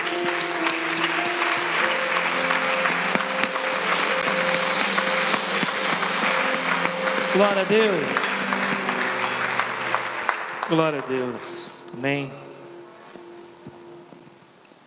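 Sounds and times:
audience applause: 0:00.0 - 0:11.8
speech: 0:07.4 - 0:08.2, 0:10.7 - 0:12.4.

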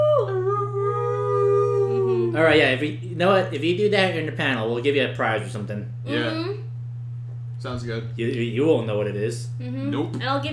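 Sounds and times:
person imitating a howl: 0:00.0 - 0:02.5
speech: 0:02.4 - 0:06.6, 0:07.6 - 0:10.5.

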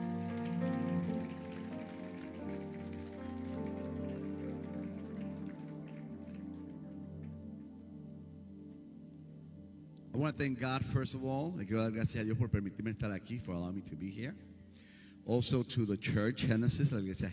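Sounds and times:
audience clapping: 0:00.0 - 0:07.7
speech: 0:10.2 - 0:14.5, 0:15.2 - 0:17.3.

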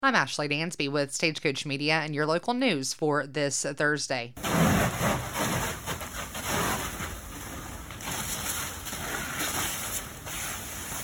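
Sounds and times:
speech: 0:00.0 - 0:05.2
firefighters spraying water on a house fire: 0:04.4 - 0:11.0.

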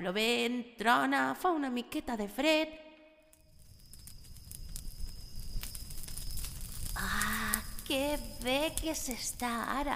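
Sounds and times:
speech: 0:00.0 - 0:02.8, 0:07.9 - 0:09.9
fire crackling in a fireplace: 0:03.2 - 0:09.9.

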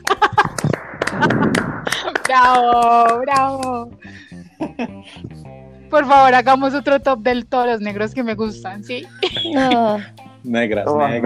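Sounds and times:
applause: 0:00.0 - 0:03.9
voices and laughter: 0:00.0 - 0:05.5, 0:09.0 - 0:10.2
speech: 0:02.3 - 0:04.2, 0:04.8 - 0:11.2.

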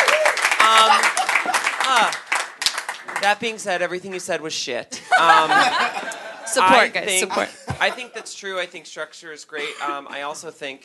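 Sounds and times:
audience clapping: 0:00.0 - 0:03.6
laughter: 0:00.6 - 0:02.1, 0:05.0 - 0:08.4
speech: 0:03.2 - 0:10.8.

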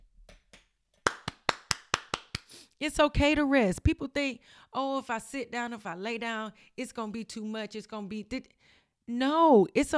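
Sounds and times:
audience clapping: 0:00.4 - 0:02.5
speech: 0:02.8 - 0:09.9.

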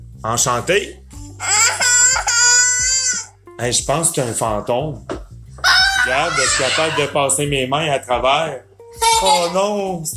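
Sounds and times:
speech: 0:00.2 - 0:01.6, 0:03.6 - 0:05.2, 0:06.1 - 0:10.1
small boy crying out in an attic: 0:01.4 - 0:03.3, 0:05.7 - 0:07.2.

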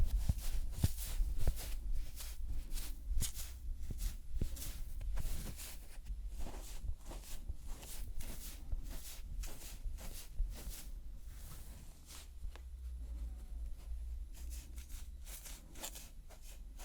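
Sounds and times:
soft rubbing and dabbing during makeup cleansing: 0:00.0 - 0:16.8.

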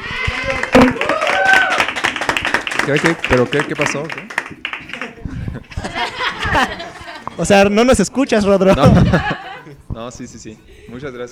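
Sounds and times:
applause: 0:00.2 - 0:05.2
speech: 0:02.9 - 0:04.6, 0:06.6 - 0:06.8, 0:07.4 - 0:09.4, 0:10.0 - 0:11.2
laughter: 0:04.9 - 0:07.4, 0:08.7 - 0:09.8.

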